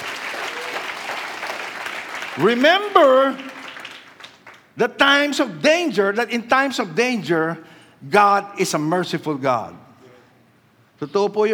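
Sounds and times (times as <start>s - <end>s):
church congregation clapping hands during worship: 0.0s - 5.4s
speech: 2.4s - 3.5s, 4.8s - 9.8s, 11.0s - 11.5s.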